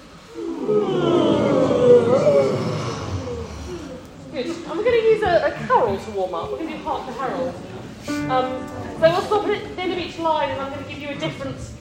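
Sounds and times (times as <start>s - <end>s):
group of people yawning loudly: 0.2s - 4.3s
speech: 5.4s - 11.7s.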